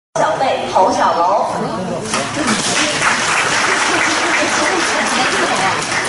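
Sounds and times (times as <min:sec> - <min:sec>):
speech: 0:00.8 - 0:03.2
audience applause: 0:02.1 - 0:06.0.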